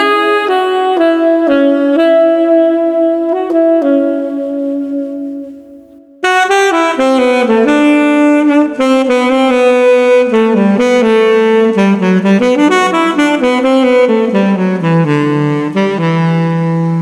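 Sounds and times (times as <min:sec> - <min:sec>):
serene street saxophone melody at 120 bpm: 0:00.0 - 0:17.0.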